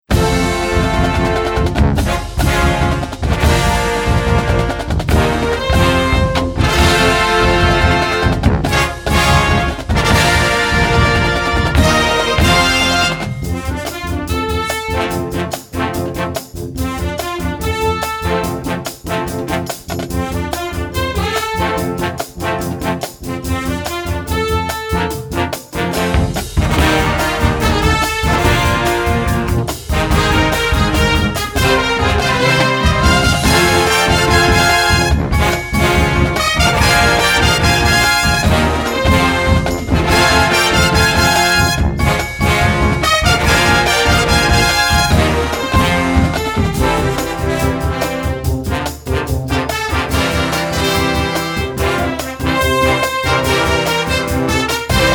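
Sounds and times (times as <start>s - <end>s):
marching band: 0.0s - 55.1s.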